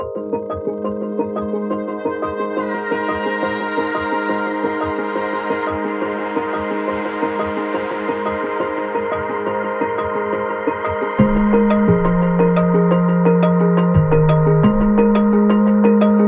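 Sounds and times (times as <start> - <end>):
glockenspiel riddim: 0.1 - 16.2.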